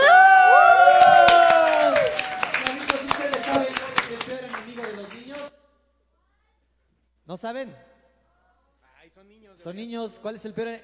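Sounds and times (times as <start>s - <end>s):
audience applause and cheering: 0.0s - 5.5s
speech: 7.4s - 7.9s, 9.2s - 10.8s.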